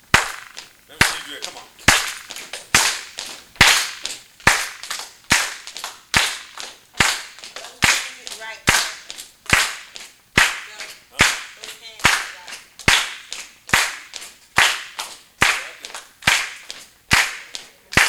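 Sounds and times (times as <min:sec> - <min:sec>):
rhythmic hand clapping: 0:00.0 - 0:18.0
faint voices: 0:00.7 - 0:04.4, 0:06.8 - 0:09.4, 0:10.4 - 0:12.8, 0:15.4 - 0:18.0.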